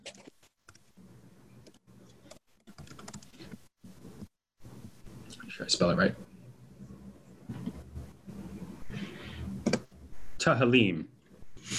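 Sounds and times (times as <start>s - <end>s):
typing on a computer keyboard into a chat: 2.3s - 3.4s
speech: 5.6s - 6.2s, 10.5s - 11.7s.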